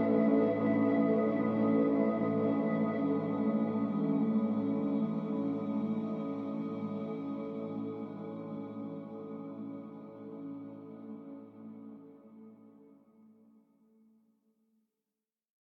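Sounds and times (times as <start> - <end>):
spa flutes: 0.0 - 12.2.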